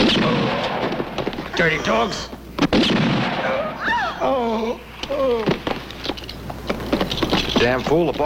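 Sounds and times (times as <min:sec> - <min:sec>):
gunshots: 0:00.0 - 0:01.6, 0:02.6 - 0:03.8
speech: 0:01.6 - 0:02.4, 0:07.6 - 0:08.2
wavering voiced cries: 0:03.4 - 0:05.6.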